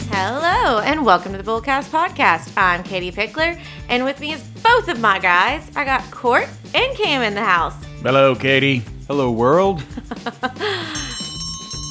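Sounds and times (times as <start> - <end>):
speech: 0.2 - 11.1
laughter: 9.7 - 11.2
opening bell ringing: 10.9 - 11.8.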